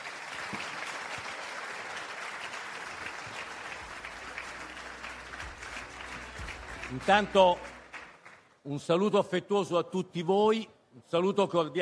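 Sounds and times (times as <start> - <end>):
audience applause: 0.0 - 8.5
speech: 6.9 - 7.7, 8.6 - 11.7.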